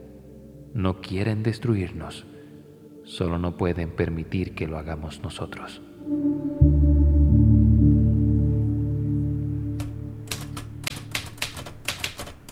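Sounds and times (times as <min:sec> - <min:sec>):
speech: 0:00.8 - 0:02.3, 0:03.1 - 0:06.7
low droning hum: 0:06.0 - 0:10.3
Remington typewriter keystrokes: 0:09.8 - 0:12.5.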